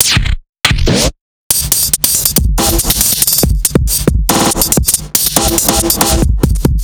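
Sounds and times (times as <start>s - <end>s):
drum: 0.0s - 6.8s.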